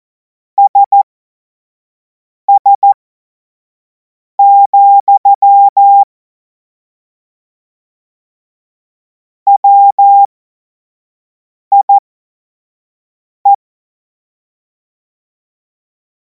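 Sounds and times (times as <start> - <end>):
morse code beeps: 0.6 - 1.0, 2.5 - 3.0, 4.4 - 6.1, 9.5 - 10.3, 11.7 - 12.0.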